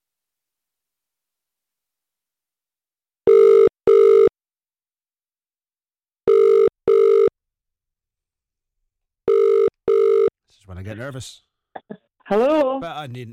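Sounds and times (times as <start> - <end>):
telephone line ringing tone bursts as a radio call-in game dials a contestant: 3.3 - 4.3, 6.3 - 7.3, 9.3 - 10.3
speech: 10.6 - 13.3.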